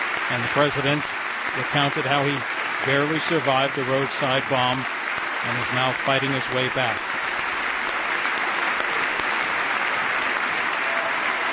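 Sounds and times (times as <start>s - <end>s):
extended standing ovation applause: 0.0s - 11.5s
speech: 0.3s - 7.0s.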